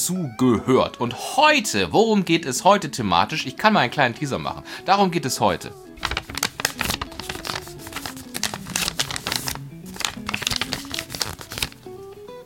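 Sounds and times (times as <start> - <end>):
speech: 0.0 - 6.3
sheet of paper being folded: 6.0 - 12.1.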